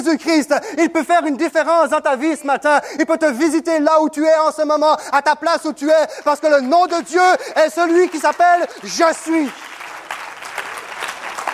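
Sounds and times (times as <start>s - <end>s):
speech: 0.0s - 9.7s
audience applause: 5.9s - 11.5s.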